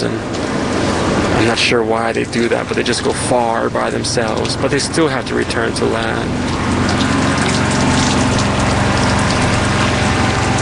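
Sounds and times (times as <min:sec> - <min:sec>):
pouring rain: 0:00.0 - 0:10.6
speech: 0:01.5 - 0:07.1.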